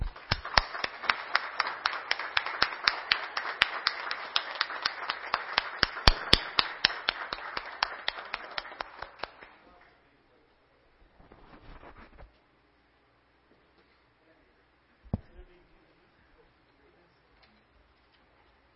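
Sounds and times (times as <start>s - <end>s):
standing audience applause: 0.0s - 9.6s.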